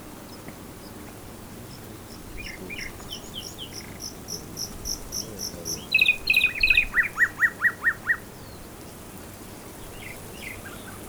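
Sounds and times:
Common nightingale singing: 2.4s - 8.2s.

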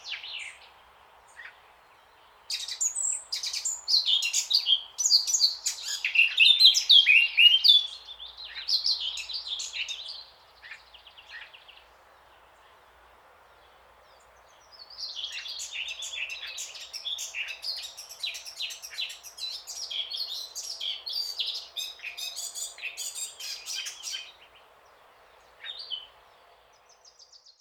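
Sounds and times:
Eurasian blackcap song, Sylvia atricapilla: 2.5s - 10.3s, 15.0s - 24.5s.

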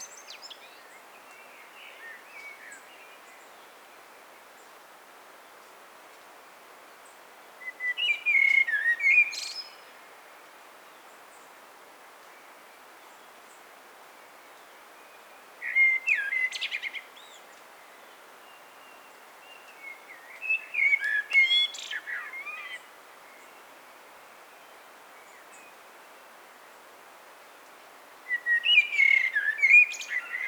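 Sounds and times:
common blackbird singing: 7.6s - 9.8s, 15.6s - 17.3s, 19.0s - 22.9s, 28.3s - 30.4s.

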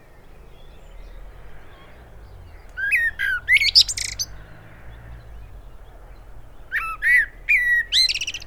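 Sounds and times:
common blackbird Turdus merula giving fluty warbled phrases: 2.8s - 4.3s, 6.7s - 8.4s.

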